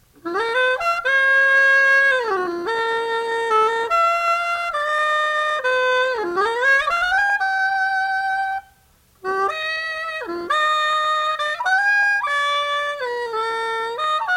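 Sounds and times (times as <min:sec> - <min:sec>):
solo soprano saxophone: 0:00.2 - 0:14.3.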